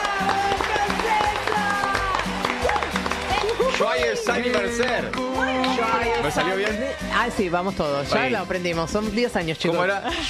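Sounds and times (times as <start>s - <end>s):
voices cheering: 0.0s - 6.8s
crowd clapping: 0.0s - 7.0s
speech: 4.0s - 10.2s.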